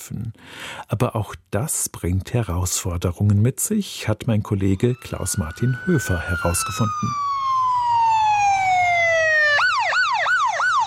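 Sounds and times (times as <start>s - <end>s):
speech: 0.1s - 8.0s
ambulance siren on an emergency run wailing and yelping: 4.6s - 10.8s.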